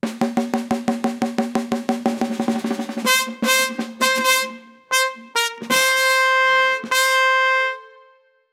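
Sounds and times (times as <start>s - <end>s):
samba victory fanfare: 0.0s - 8.0s.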